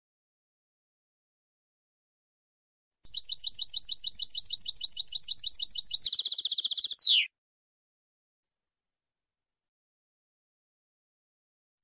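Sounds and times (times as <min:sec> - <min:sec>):
European goldfinch singing: 0:03.1 - 0:07.3.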